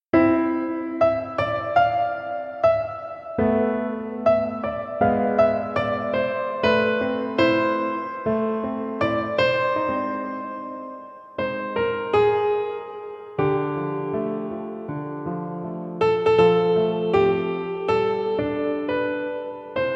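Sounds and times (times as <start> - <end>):
beautiful melancholic piece: 0.1 - 19.9.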